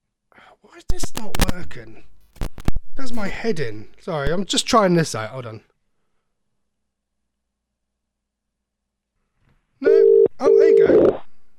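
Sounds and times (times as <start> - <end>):
speech: 0.6 - 2.2, 3.0 - 5.7, 10.4 - 11.2
landline telephone ringing: 9.9 - 11.2.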